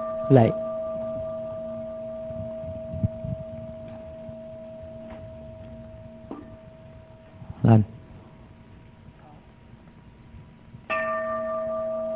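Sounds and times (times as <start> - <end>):
Buddhist temple bell ringing: 0.0 - 7.4, 10.9 - 12.1
speech: 0.3 - 0.6.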